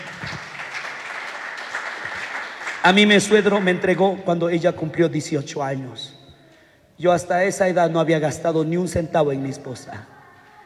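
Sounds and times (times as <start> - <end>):
audience applause: 0.0 - 3.8
speech: 2.8 - 6.2, 7.0 - 10.2.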